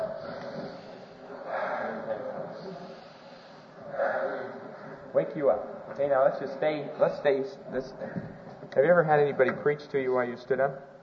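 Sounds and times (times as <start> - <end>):
church congregation breathing deeply together: 0.0 - 5.2, 6.9 - 8.6
speech: 5.2 - 10.9.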